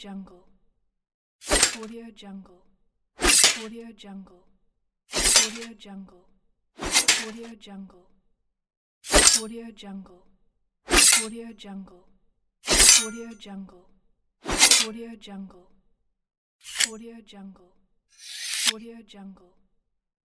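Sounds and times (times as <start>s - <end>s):
dagger sound effects: 1.5s - 1.9s, 3.2s - 3.7s, 5.1s - 5.7s, 6.8s - 7.5s, 9.1s - 9.4s, 10.9s - 11.3s, 12.7s - 13.4s, 14.5s - 14.9s, 16.7s - 16.9s.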